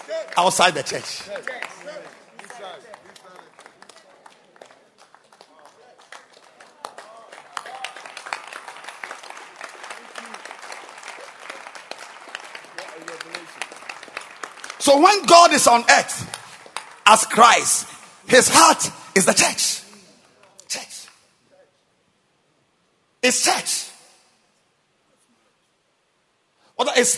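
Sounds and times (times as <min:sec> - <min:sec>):
audience clapping: 0:00.0 - 0:18.8
speech: 0:00.2 - 0:02.1, 0:14.8 - 0:16.4, 0:17.1 - 0:19.8, 0:23.3 - 0:23.9, 0:27.0 - 0:27.1.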